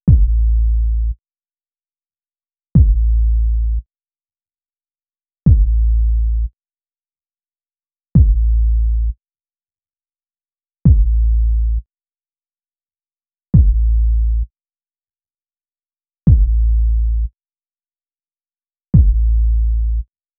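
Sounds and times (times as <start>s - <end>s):
synth bass: 0.1s - 1.2s, 2.8s - 3.8s, 5.5s - 6.5s, 8.2s - 9.2s, 10.9s - 11.8s, 13.6s - 14.5s, 16.3s - 17.3s, 19.0s - 20.0s.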